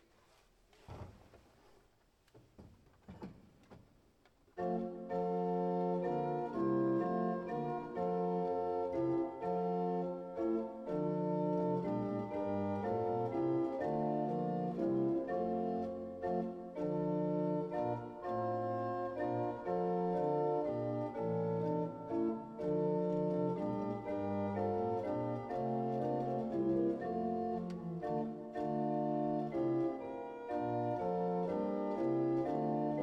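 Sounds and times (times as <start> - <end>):
faint knocks and shuffling: 0.0 - 4.6
hymn melody played in full sustained chords: 4.6 - 33.0.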